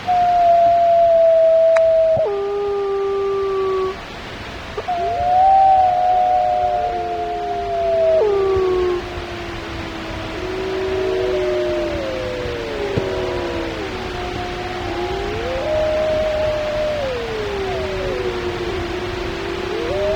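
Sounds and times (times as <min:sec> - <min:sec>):
solitary mammal howl: 0:00.0 - 0:20.1.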